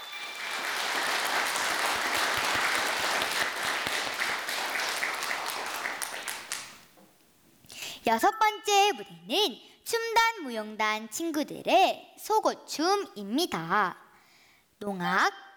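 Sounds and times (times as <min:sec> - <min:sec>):
audience applause: 0:00.0 - 0:06.9
speech: 0:08.1 - 0:14.0, 0:14.8 - 0:15.4.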